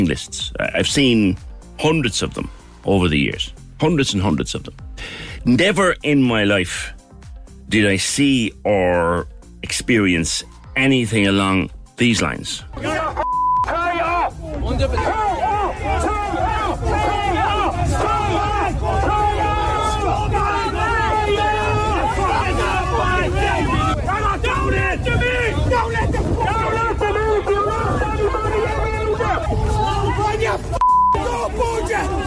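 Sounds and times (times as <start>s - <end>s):
speech: 0.0s - 7.0s, 7.7s - 13.8s, 14.7s - 16.0s
angry protest crowd shouting in a scrum at Leinster House: 12.7s - 32.2s
short high beep: 13.2s - 13.7s, 30.8s - 31.2s.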